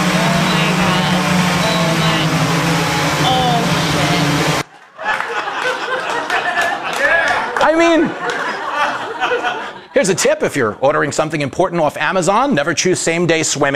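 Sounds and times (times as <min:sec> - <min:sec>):
delivery drone flying: 0:00.0 - 0:04.6
rough rushing noise: 0:00.0 - 0:04.6
laughter: 0:00.2 - 0:10.4
speech: 0:10.0 - 0:13.7.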